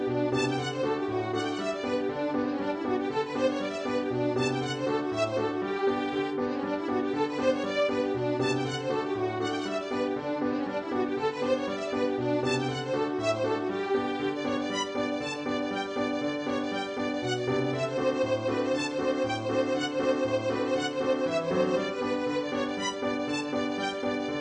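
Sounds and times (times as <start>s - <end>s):
polka music: 0.3s - 24.4s.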